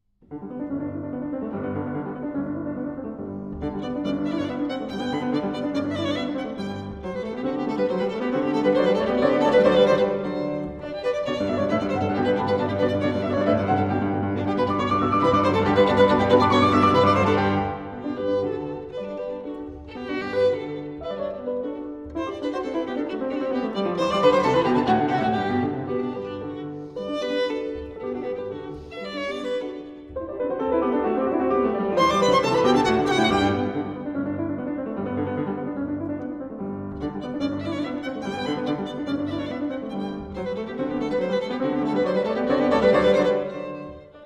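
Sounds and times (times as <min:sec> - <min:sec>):
violin sonata in G major, allegro vivace: 0:00.3 - 0:44.2.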